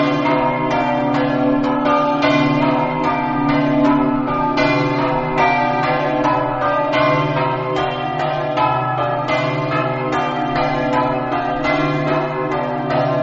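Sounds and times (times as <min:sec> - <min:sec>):
bells ringing in Torreano: 0:00.0 - 0:13.2.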